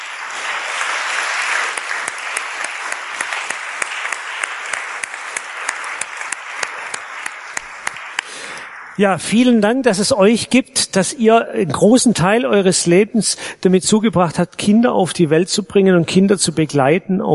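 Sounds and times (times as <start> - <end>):
audience clapping: 0.0 - 10.1
speech: 9.0 - 17.3.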